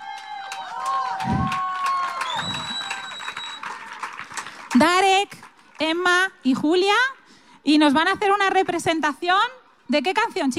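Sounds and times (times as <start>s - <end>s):
audience cheering: 0.0s - 4.5s
audience applause: 0.0s - 5.9s
speech: 4.8s - 10.5s.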